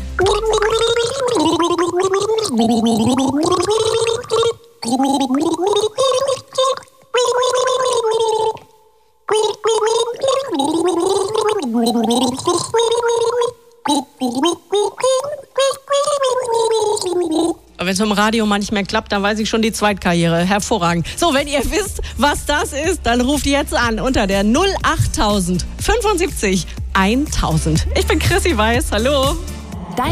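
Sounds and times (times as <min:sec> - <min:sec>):
person gargling water: 0:00.2 - 0:08.7, 0:09.3 - 0:17.6
speech: 0:02.5 - 0:04.0, 0:04.9 - 0:06.3, 0:18.2 - 0:30.1.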